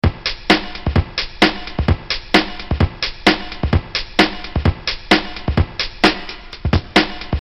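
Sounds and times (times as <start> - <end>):
music loop: 0.0 - 7.3.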